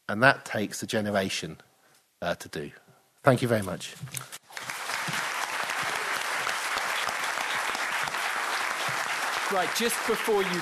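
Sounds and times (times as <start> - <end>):
speech: 0.1 - 4.4, 9.5 - 10.5
applause from a sizable audience: 4.4 - 10.5.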